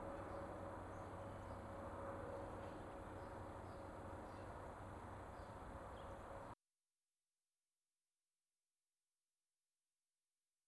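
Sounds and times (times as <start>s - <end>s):
distant plane: 0.0s - 6.6s.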